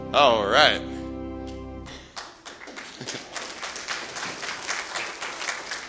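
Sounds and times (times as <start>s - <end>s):
speech: 0.1s - 0.9s
audience clapping: 1.5s - 5.8s.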